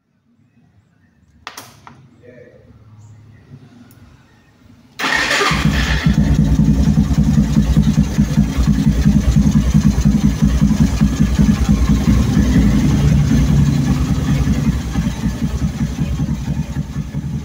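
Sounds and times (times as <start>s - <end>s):
motorcycle: 5.0s - 17.4s.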